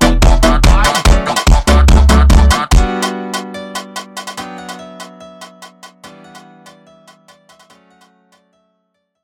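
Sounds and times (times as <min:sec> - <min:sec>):
sped-up melancholy funk music: 0:00.0 - 0:07.4.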